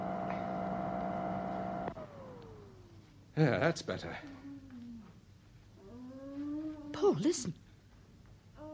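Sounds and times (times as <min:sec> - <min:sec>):
vacuum cleaner running: 0:00.0 - 0:02.7
speech: 0:03.4 - 0:04.4, 0:07.1 - 0:07.6.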